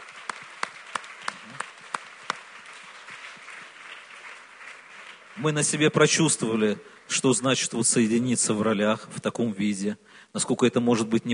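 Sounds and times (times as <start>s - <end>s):
group applause: 0.0s - 7.8s
speech: 5.4s - 11.3s.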